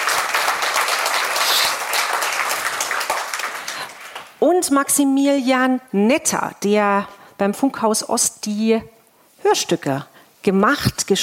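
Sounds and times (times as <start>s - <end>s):
audience applause: 0.0s - 4.4s
speech: 4.4s - 11.2s.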